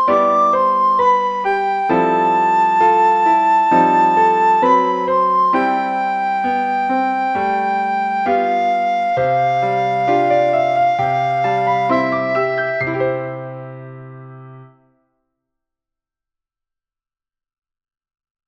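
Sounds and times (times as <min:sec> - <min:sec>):
soprano singing: 0:00.0 - 0:13.8.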